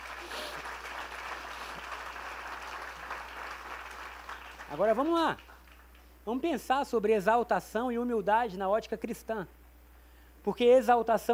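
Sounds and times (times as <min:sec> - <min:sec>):
audience applause: 0:00.0 - 0:06.0
speech: 0:04.7 - 0:05.5, 0:06.3 - 0:09.6, 0:10.4 - 0:11.3.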